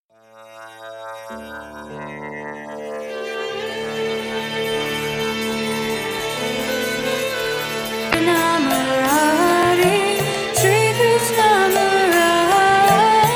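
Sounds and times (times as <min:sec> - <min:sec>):
temple devotional song band playing: 0:03.1 - 0:13.3.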